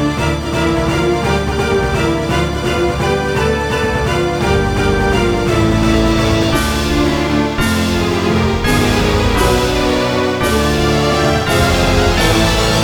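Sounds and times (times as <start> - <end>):
background music: 0.0 - 12.8.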